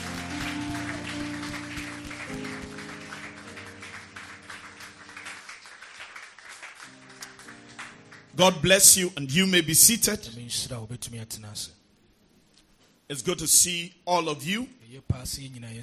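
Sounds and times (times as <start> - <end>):
crowd clapping hands loudly: 0.0 - 8.8
sustained organ or keyboard chords: 0.0 - 10.8
speech: 8.4 - 11.8, 13.1 - 15.8.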